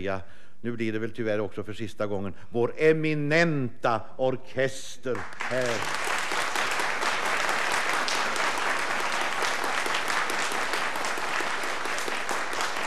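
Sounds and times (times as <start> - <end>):
speech: 0.0 - 6.1
audience applause for orchestra: 5.2 - 12.8.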